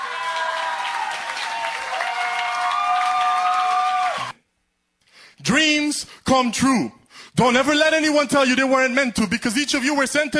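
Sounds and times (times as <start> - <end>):
audience applause welcoming a performer: 0.0 - 4.4
speech: 5.5 - 10.3.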